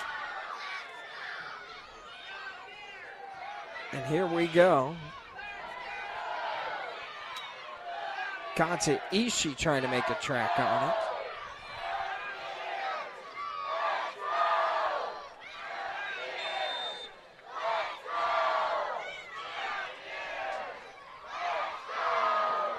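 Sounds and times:
rowdy stadium crowd cheering in Morgantown: 0.0 - 22.7
speech: 3.9 - 5.2, 8.6 - 11.1.

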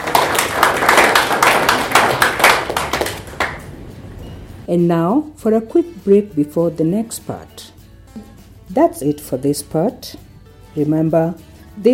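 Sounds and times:
audience clapping: 0.0 - 3.8
speech: 4.7 - 10.2, 10.8 - 11.9.

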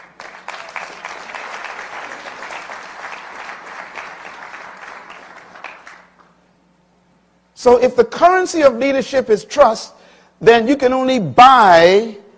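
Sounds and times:
audience clapping: 0.0 - 6.4
speech: 7.6 - 12.2.

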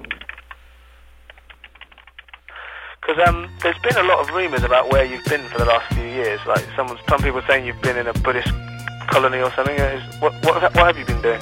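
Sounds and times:
typing on a computer keyboard: 0.0 - 0.6, 1.2 - 2.6
speech: 3.1 - 11.3.

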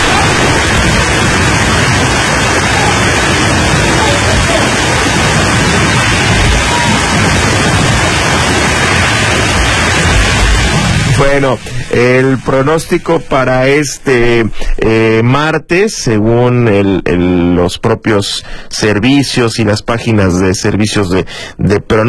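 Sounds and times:
hailstorm: 0.0 - 13.8
speech: 11.2 - 22.0.

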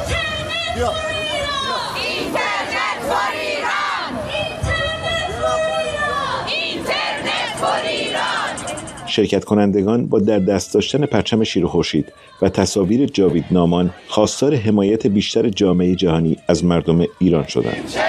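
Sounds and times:
speech: 0.8 - 1.2, 9.1 - 18.0
Iranian protesters in Stockholm chanting slogans: 1.2 - 9.0, 13.2 - 14.6, 17.3 - 18.0.

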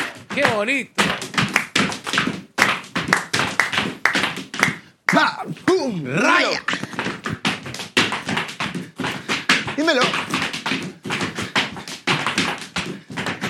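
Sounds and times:
zapateo footwork tapping on floor: 0.0 - 13.4
speech: 0.4 - 1.1, 5.2 - 6.8, 9.8 - 10.3.

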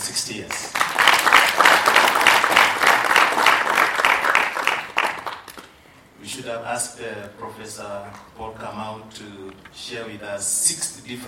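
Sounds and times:
audience clapping: 0.0 - 5.8
speech: 0.2 - 0.7, 6.5 - 11.2.

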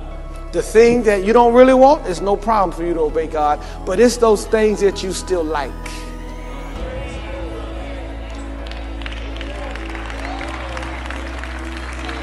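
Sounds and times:
sustained low drone: 0.0 - 12.2
speech: 0.5 - 6.1
scattered hand claps from a small audience: 8.2 - 12.2.

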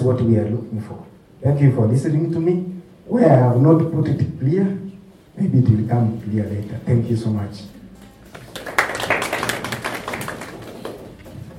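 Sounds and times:
speech: 0.0 - 4.8, 5.4 - 7.8
audience clapping: 8.0 - 11.5.

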